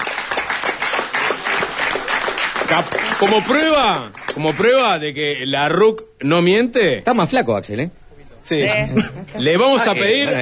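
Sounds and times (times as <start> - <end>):
applause: 0.0 - 5.0
speech: 2.7 - 10.3.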